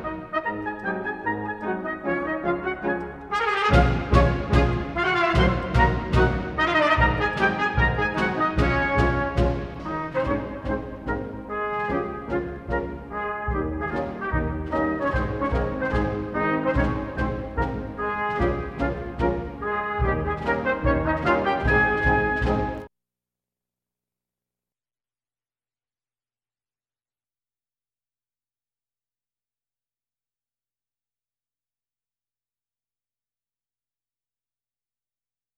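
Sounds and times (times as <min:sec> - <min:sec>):
Schottische quadrille dance music: 0:00.0 - 0:22.9.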